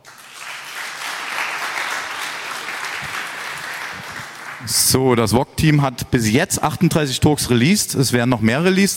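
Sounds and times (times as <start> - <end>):
crowd applause: 0.0 - 5.0
speech: 4.7 - 8.9.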